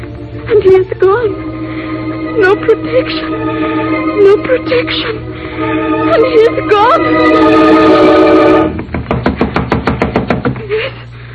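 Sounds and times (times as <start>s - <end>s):
speech: 0.5s - 1.6s, 2.4s - 8.8s
knocking on a door: 8.9s - 10.6s.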